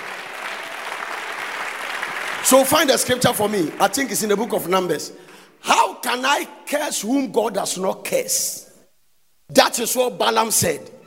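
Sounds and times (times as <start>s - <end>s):
audience clapping: 0.0s - 5.5s
speech: 2.4s - 5.4s, 6.1s - 8.7s, 9.5s - 11.0s.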